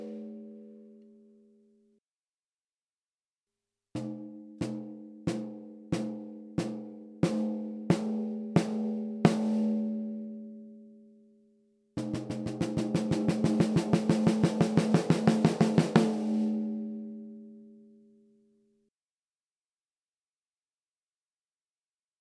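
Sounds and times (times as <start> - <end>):
deep 14x8 mahogany snare drum: 4.0 - 9.8, 12.0 - 16.7.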